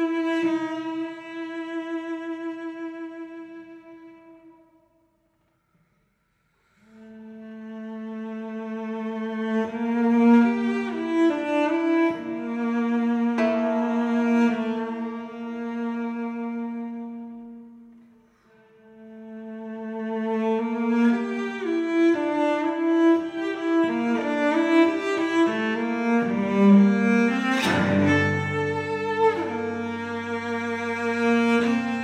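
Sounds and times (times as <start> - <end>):
cello: 0.0 - 5.1, 6.6 - 32.0
koto: 10.4 - 17.6, 22.6 - 32.0.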